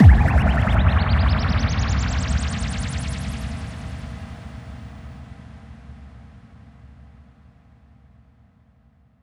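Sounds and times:
bass drum FX kicks: 0.0 - 4.0.

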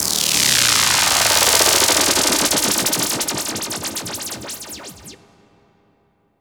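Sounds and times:
lasers: 1.0 - 5.2.

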